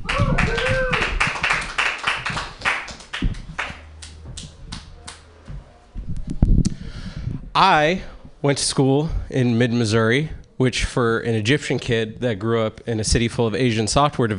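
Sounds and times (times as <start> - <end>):
sparse clapping from a small open-mic comedy audience: 0.0 - 5.2
speech: 7.6 - 14.3.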